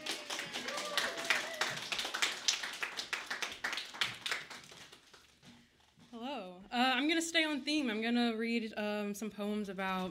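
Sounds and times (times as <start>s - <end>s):
audience clapping: 0.0s - 5.4s
speech: 7.3s - 10.0s.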